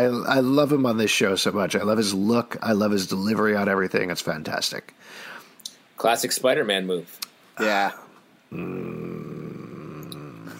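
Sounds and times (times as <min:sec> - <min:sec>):
speech: 0:00.0 - 0:05.3, 0:06.0 - 0:09.4
pet cat growling: 0:07.6 - 0:10.5.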